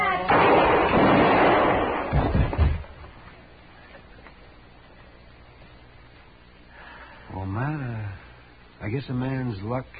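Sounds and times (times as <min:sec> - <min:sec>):
gunshots in a radio western drama showdown: 0:00.3 - 0:03.0
speech: 0:09.0 - 0:09.9.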